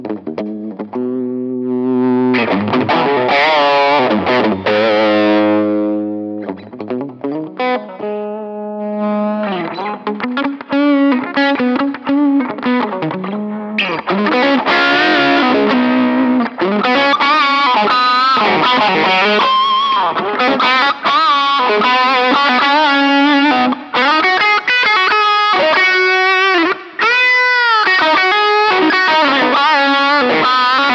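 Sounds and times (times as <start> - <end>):
electric guitar through a 2x10 amplifier: 0.0 - 30.9.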